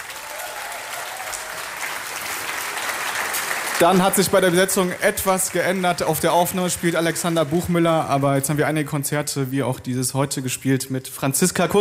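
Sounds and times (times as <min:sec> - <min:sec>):
audience applause: 0:00.0 - 0:08.2
speech: 0:03.8 - 0:11.7.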